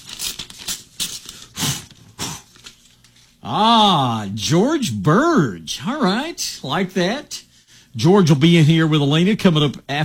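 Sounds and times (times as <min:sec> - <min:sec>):
envelope being opened: 0:00.0 - 0:03.3
speech: 0:03.5 - 0:10.0.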